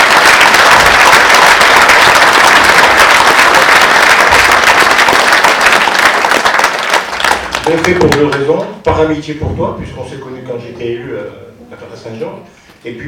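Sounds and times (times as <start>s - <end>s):
audience applause: 0.0s - 8.5s
speech: 7.9s - 13.0s.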